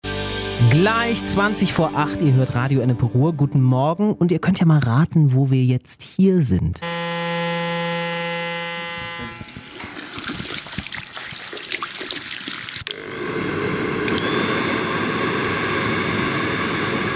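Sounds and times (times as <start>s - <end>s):
speech: 0.6s - 7.0s
hairdryer in a hair salon: 6.8s - 10.9s, 12.8s - 17.1s.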